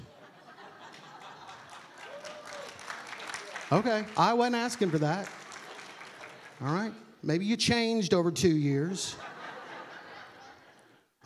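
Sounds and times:
laughter: 0.0s - 2.6s, 9.0s - 11.2s
church audience clapping: 0.7s - 7.0s
speech: 3.7s - 5.4s, 6.6s - 9.3s.

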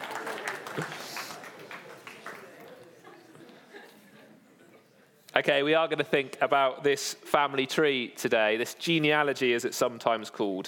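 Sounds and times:
audience applause: 0.0s - 3.4s
laughter: 0.6s - 5.0s
speech: 0.8s - 1.0s, 5.4s - 10.6s.

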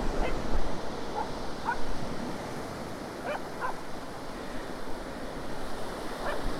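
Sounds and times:
waves washing on a beach as the tide goes out: 0.0s - 6.5s
dog barking: 0.2s - 0.4s, 1.1s - 1.8s, 3.2s - 3.8s, 6.2s - 6.5s.

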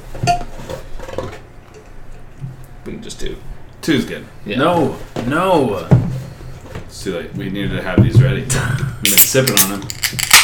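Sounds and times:
speech: 3.0s - 6.1s, 7.0s - 10.4s
ale bottles opening: 9.1s - 10.4s.

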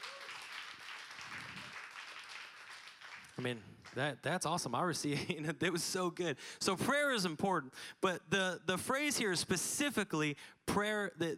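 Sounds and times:
audience clapping: 0.0s - 4.6s
speech: 3.4s - 11.3s.

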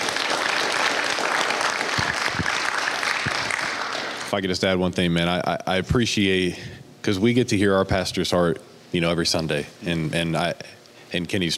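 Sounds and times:
round of applause: 0.0s - 4.4s
speech: 4.3s - 11.5s.

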